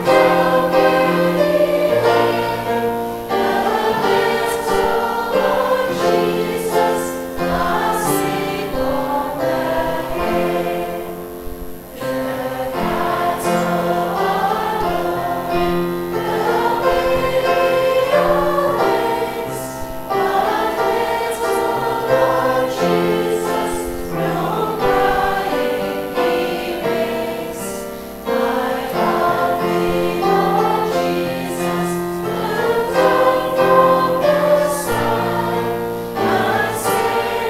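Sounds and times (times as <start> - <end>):
guide Christmas carol: 0.0 - 37.4.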